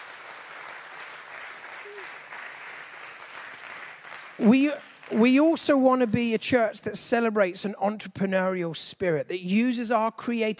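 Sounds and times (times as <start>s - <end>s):
large group applause: 0.0s - 5.6s
speech: 4.4s - 10.5s.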